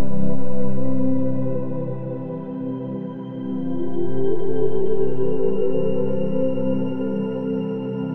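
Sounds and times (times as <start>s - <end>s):
floating outer space atmosphere: 0.0s - 8.0s.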